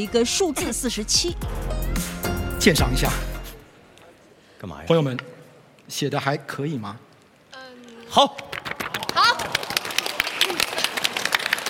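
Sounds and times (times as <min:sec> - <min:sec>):
speech: 0:00.0 - 0:03.4, 0:04.6 - 0:05.3, 0:05.9 - 0:07.1, 0:08.1 - 0:08.5
audience clapping: 0:08.2 - 0:11.6.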